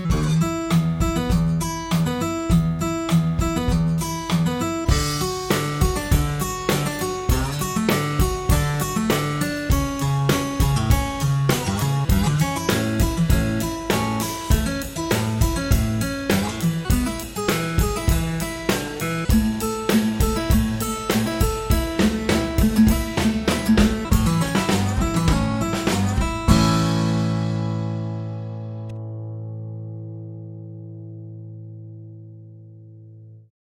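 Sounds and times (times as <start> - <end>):
steel-string acoustic guitar picking country music: 0.0 - 32.2.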